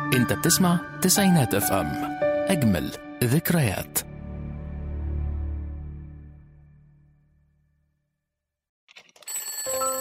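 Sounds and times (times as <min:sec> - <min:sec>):
speech: 0:00.1 - 0:04.1
alarm clock ringing: 0:09.2 - 0:09.9.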